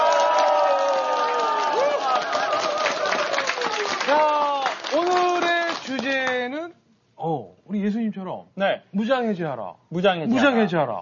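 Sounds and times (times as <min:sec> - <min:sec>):
audience cheering: 0:00.0 - 0:05.9
speech: 0:07.3 - 0:11.0.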